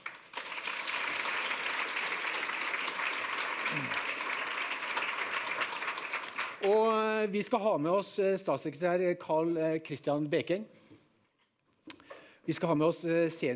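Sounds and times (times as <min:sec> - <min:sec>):
audience applause: 0:00.0 - 0:07.1
speech: 0:06.6 - 0:10.8, 0:12.5 - 0:13.5.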